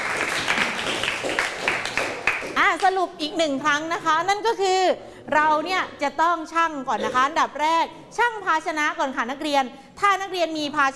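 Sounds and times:
classroom applause: 0.0 - 2.9
speech: 2.7 - 10.9.

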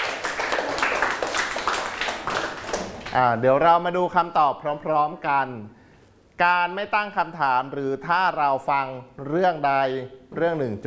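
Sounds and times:
classmates clapping: 0.0 - 3.3
speech: 3.1 - 5.8, 6.4 - 10.8.

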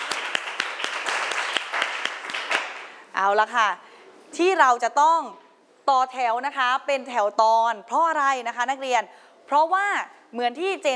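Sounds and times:
classroom clapping: 0.0 - 3.0
speech: 3.2 - 10.9.

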